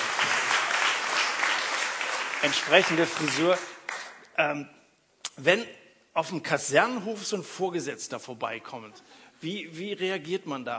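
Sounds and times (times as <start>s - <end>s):
audience applause: 0.0s - 4.2s
speech: 2.4s - 3.7s, 4.4s - 4.8s, 5.4s - 10.7s.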